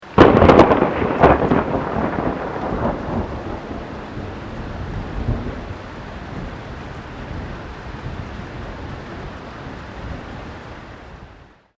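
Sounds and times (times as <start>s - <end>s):
close thunder: 0.0s - 9.3s
rain: 0.0s - 11.7s.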